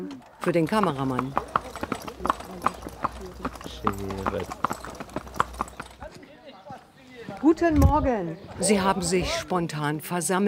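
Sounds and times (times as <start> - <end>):
speech: 0.0 - 1.5, 3.8 - 4.8, 7.5 - 10.4
horse-drawn carriage hooves clip-clopping: 0.4 - 7.6.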